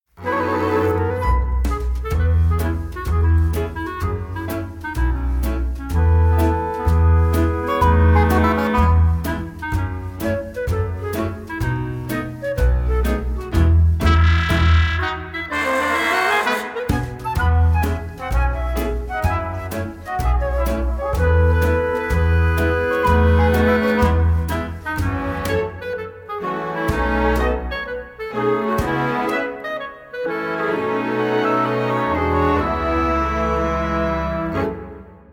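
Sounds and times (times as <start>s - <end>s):
backing music: 0.2s - 35.3s.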